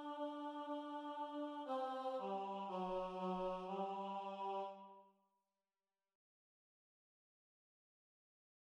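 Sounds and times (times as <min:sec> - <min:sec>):
tenor voices singing an arrangement: 0:00.0 - 0:04.9.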